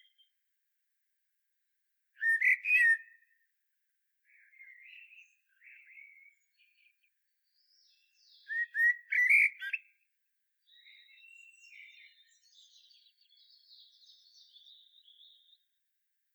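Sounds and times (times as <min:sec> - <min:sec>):
common blackbird singing: 0:02.2 - 0:03.2, 0:04.3 - 0:10.0, 0:10.6 - 0:15.7.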